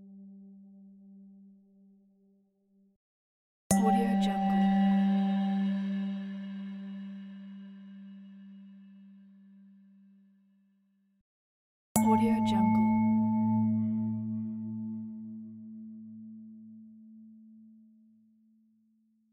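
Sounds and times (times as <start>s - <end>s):
Tibetan singing bowls: 3.7s - 8.7s, 12.0s - 16.0s.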